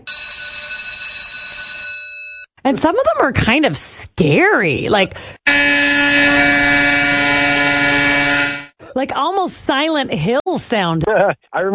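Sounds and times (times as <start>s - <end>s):
school recess electric bell ringing: 0.0s - 2.5s, 5.5s - 8.7s
speech: 2.7s - 5.4s, 9.0s - 11.7s.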